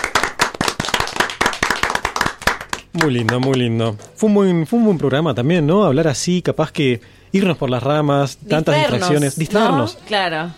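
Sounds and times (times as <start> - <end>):
small group clapping celebrating an anniversary: 0.0 - 4.0
speech: 3.0 - 10.5.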